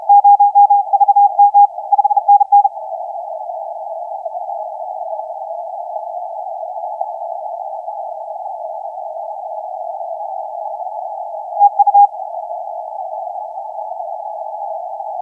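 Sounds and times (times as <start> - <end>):
CW morse code tones on the 30m band: 0.0 - 2.7, 11.6 - 12.1.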